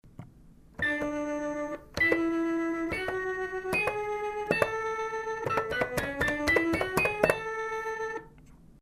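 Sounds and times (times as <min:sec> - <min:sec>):
keyboard: 0:00.8 - 0:08.3.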